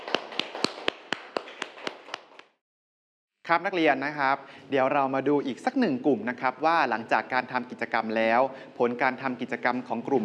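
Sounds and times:
students clapping: 0.0 - 2.6
speech: 3.5 - 10.2.

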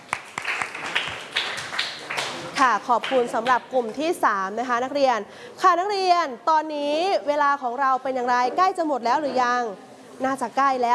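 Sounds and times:
students in a class applauding a presenting group: 0.0 - 3.6
speech: 2.6 - 10.9.

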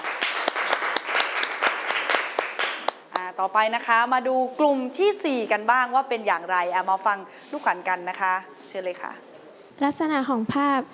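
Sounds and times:
applause: 0.0 - 3.3
speech: 3.4 - 10.9.

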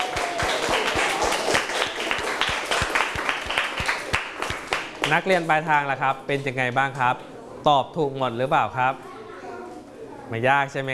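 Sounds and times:
classroom applause: 0.0 - 5.2
speech: 5.1 - 9.1, 10.3 - 10.9.

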